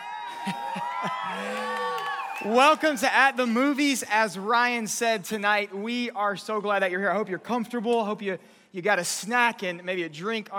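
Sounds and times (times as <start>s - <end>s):
audience cheering and whooping: 0.0s - 3.7s
speech: 2.4s - 10.5s.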